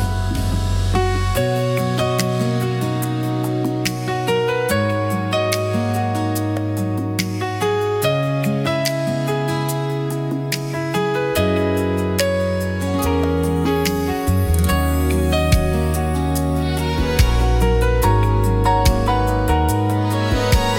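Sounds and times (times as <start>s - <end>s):
easy listening music: 0.0s - 20.7s.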